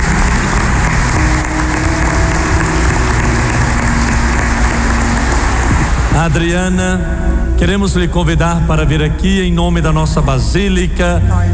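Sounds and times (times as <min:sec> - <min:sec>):
audience applause: 0:00.0 - 0:06.3
speech: 0:06.2 - 0:11.5.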